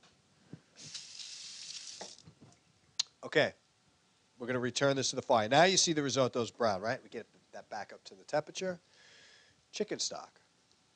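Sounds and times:
washing hands under running tap: 0.8s - 2.2s
speech: 3.3s - 3.6s, 4.4s - 9.0s, 9.7s - 10.4s.

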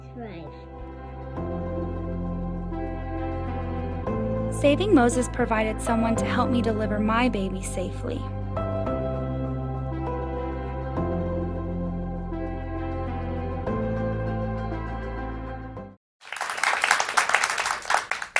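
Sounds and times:
music with slow chord changes: 0.0s - 16.0s
speech: 0.2s - 1.4s, 4.5s - 8.4s
studio audience applause: 16.2s - 18.3s.

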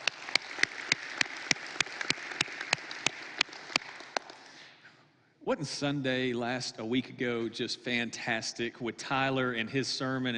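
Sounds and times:
audience applause in a church service hall: 0.0s - 4.5s
speech: 5.5s - 10.3s.

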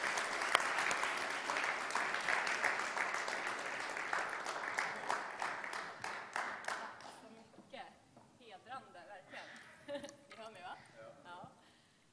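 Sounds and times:
audience applause: 0.0s - 7.2s.

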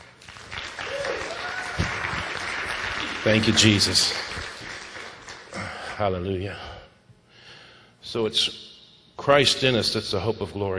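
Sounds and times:
audience clapping: 0.0s - 5.7s
speech: 3.2s - 4.2s, 6.0s - 6.7s, 8.1s - 10.7s.

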